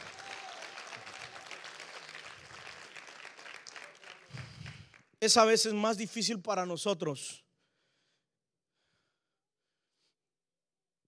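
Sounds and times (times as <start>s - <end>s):
audience applauding: 0.0s - 5.1s
speech: 5.2s - 7.4s.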